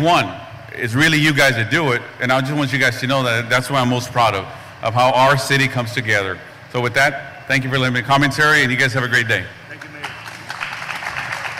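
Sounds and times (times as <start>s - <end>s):
speech: 0.0s - 9.6s
audience applause: 9.8s - 11.5s.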